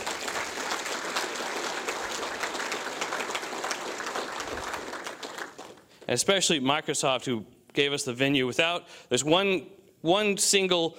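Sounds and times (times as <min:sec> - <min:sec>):
audience applause for sponsors: 0:00.0 - 0:06.0
speech: 0:06.1 - 0:10.9.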